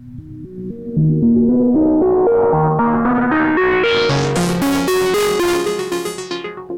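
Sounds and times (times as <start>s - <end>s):
heavily modulated wavefolded synthesizer playing short pitched notes: 0.4s - 6.7s.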